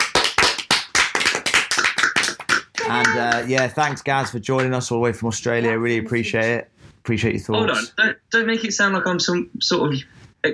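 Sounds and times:
few hands clapping: 0.0 - 5.0
speech: 2.9 - 10.5.

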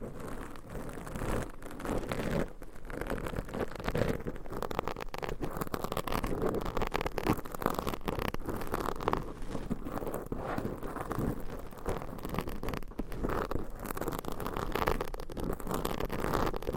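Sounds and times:
binaural mic scratching with massage and tapping: 0.0 - 16.7.

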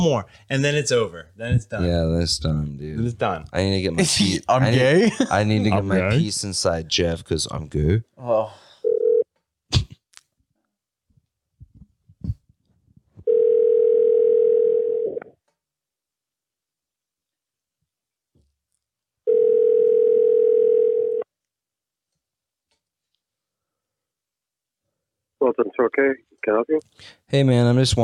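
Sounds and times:
speech: 0.0 - 9.0, 25.4 - 28.0
telephone ringback tone while placing call: 8.8 - 9.2, 13.3 - 15.2, 19.3 - 21.2.

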